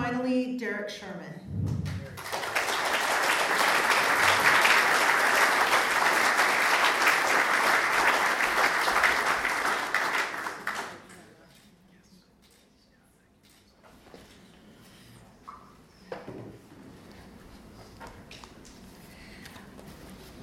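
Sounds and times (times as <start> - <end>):
speech: 0.5 - 2.0
audience clapping: 1.7 - 11.3.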